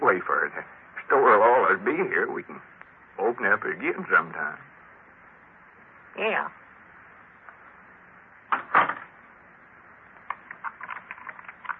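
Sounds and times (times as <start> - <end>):
speech: 0.2 - 0.8, 1.7 - 4.7, 6.2 - 6.6
door of the Jot 'em Down country store being closed: 8.5 - 9.2.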